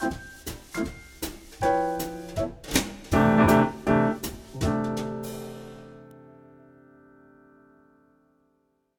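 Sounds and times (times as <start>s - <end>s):
bass in C: 1.6s - 6.2s.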